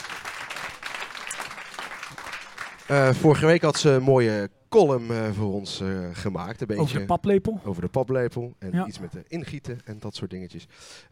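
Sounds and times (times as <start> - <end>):
audience applause: 0.0 - 3.2
speech: 2.9 - 11.0.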